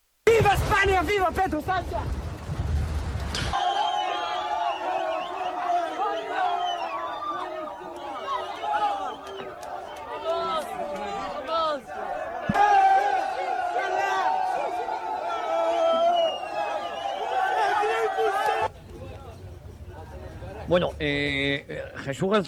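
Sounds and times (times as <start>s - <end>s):
speech: 0.4s - 2.2s, 20.7s - 22.4s
crowd shouting a political chant while storming in: 3.6s - 20.5s.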